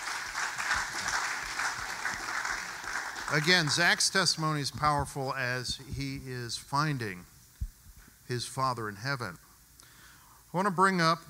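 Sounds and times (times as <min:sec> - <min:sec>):
audience clapping: 0:00.0 - 0:05.1
speech: 0:03.3 - 0:07.3, 0:08.3 - 0:09.4, 0:10.5 - 0:11.2.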